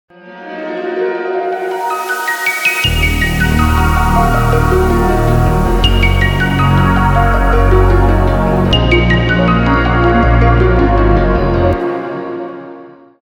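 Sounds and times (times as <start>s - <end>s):
intro music: 1.3s - 11.8s.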